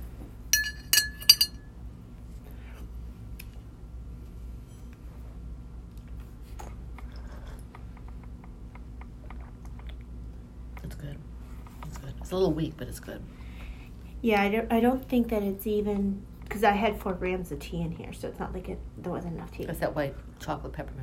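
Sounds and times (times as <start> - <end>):
low steady hum: 0.0 - 21.0
spoon stirring tea in a cup: 0.6 - 1.6
speech: 12.3 - 13.4, 14.2 - 21.0.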